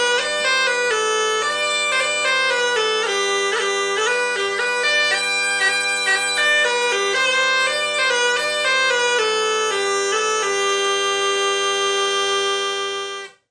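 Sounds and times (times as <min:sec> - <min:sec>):
bagpipe medley: 0:00.0 - 0:13.4.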